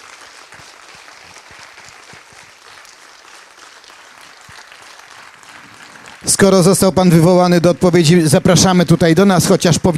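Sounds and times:
audience applause: 0.0s - 9.9s
speech: 6.2s - 9.9s.

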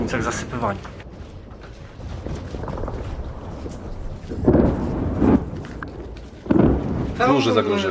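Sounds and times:
artillery fire: 2.1s - 7.8s.

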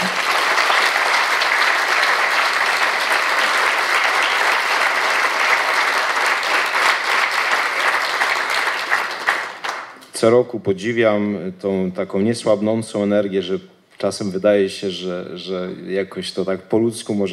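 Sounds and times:
audience applause: 0.0s - 10.0s
speech: 10.2s - 17.3s.

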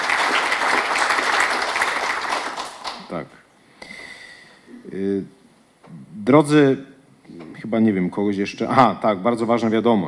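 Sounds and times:
audience applause for the hosts: 0.0s - 3.1s
speech: 6.3s - 6.9s, 7.7s - 10.0s.

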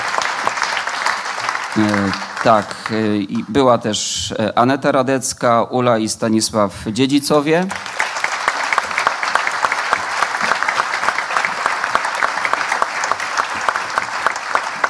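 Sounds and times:
audience applause: 0.0s - 3.8s, 7.7s - 14.8s
speech: 1.8s - 8.1s.

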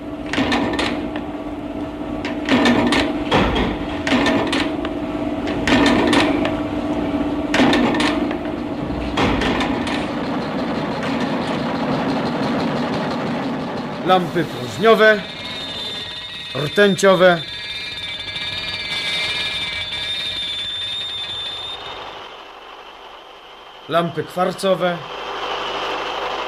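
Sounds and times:
factory assembly line machine hum: 0.0s - 26.4s
loud metallic clanking and rattling: 2.2s - 6.6s, 7.5s - 16.5s
speech: 14.1s - 15.4s, 16.5s - 17.5s, 23.9s - 25.2s.

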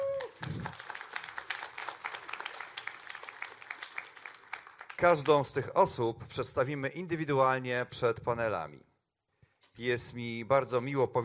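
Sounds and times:
audience applause: 0.0s - 5.4s
speech: 5.0s - 8.9s, 9.8s - 11.2s.

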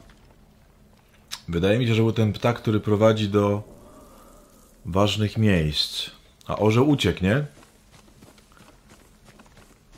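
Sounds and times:
speech: 1.5s - 3.8s, 4.8s - 7.6s
horse galloping in a video game: 7.5s - 9.9s.

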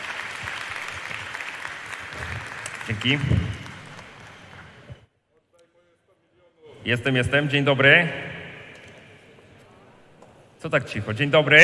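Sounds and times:
audience applause: 0.0s - 5.0s
speech: 2.9s - 3.6s, 6.9s - 8.4s, 10.6s - 11.6s.

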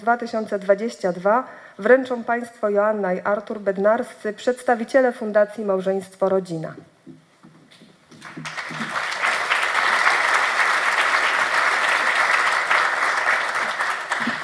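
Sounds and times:
speech: 0.0s - 7.2s
audience applause: 8.2s - 14.4s.

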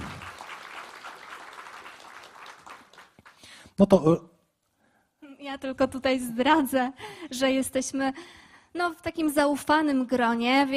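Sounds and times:
audience applause: 0.0s - 3.6s
speech: 3.8s - 4.3s, 5.5s - 10.7s.

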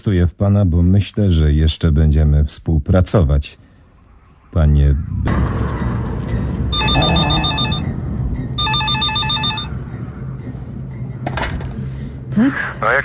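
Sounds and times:
speech: 0.0s - 3.6s, 4.5s - 6.4s, 12.4s - 13.0s
telephone ringing: 6.7s - 8.0s, 8.6s - 9.8s.

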